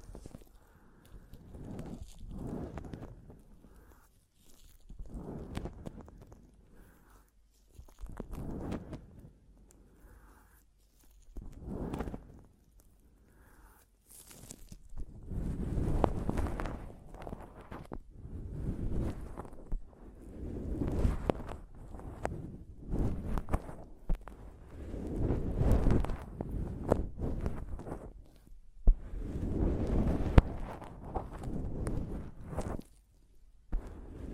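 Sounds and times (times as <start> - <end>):
microphone tapping and scratching: 0.0 - 0.6, 1.4 - 3.5, 4.4 - 6.6, 7.6 - 9.3, 11.1 - 12.5, 14.2 - 34.3.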